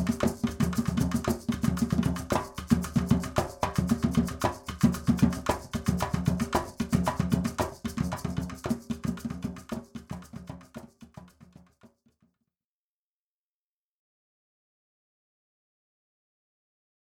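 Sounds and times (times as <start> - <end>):
bomba sica rhythms: 0.0 - 11.9.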